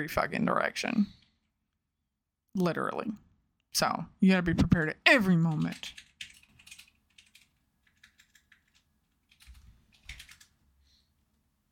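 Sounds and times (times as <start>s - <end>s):
speech: 0.0s - 1.2s, 2.6s - 6.1s
fast, vigorous typing on a computer keyboard: 5.4s - 10.6s.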